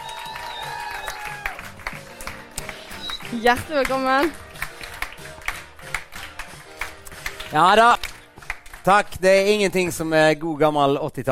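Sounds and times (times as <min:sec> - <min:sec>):
audience applause: 0:00.0 - 0:09.0
speech: 0:03.3 - 0:04.4, 0:07.5 - 0:08.1, 0:08.8 - 0:11.3.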